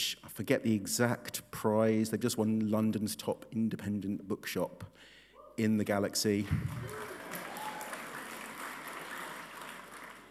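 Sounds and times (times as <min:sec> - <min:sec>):
speech: 0:00.0 - 0:07.1
audience applause: 0:06.4 - 0:10.2.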